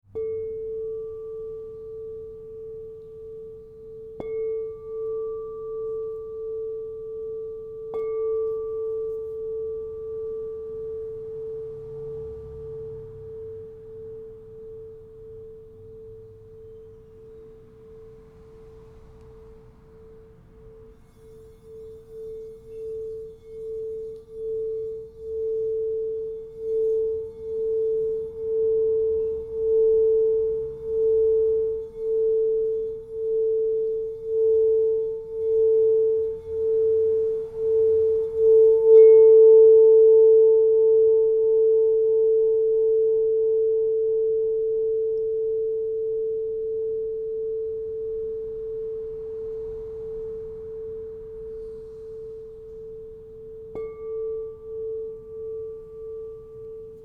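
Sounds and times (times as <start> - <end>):
crystal singing bowls ringing: 0.0 - 57.0.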